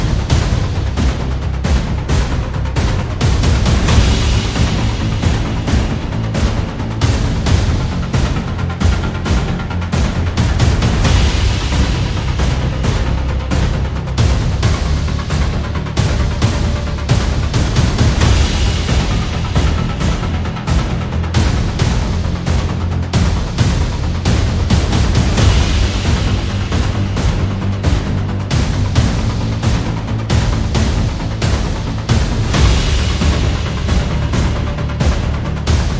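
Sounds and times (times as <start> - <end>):
percussion: 0.0 - 35.9
rhythmic pulses: 0.0 - 35.9.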